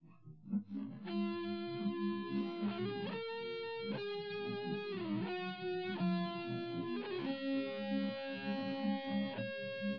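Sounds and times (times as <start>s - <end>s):
instrumental music without drums: 0.0s - 9.9s.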